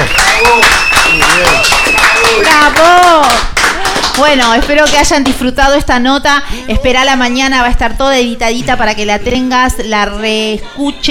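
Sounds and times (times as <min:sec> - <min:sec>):
thin sustained whistle-like tone: 0:00.0 - 0:02.4
loud crowd clapping: 0:00.0 - 0:05.5
speech: 0:04.2 - 0:11.1.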